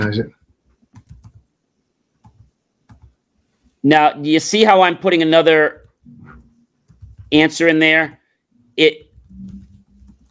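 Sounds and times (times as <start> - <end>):
speech: 0.0 - 0.4, 3.8 - 6.2, 7.3 - 8.2, 8.8 - 9.0
computer keyboard typing a question into a chatbot: 0.9 - 1.5, 2.2 - 3.2, 5.7 - 8.2, 9.0 - 10.2.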